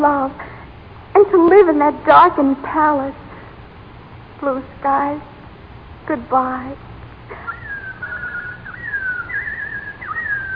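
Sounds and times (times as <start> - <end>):
faint low hum: 0.0 - 10.5
speech: 1.2 - 3.2, 4.4 - 5.3, 6.0 - 7.5
robin whistling in spring: 7.3 - 10.5.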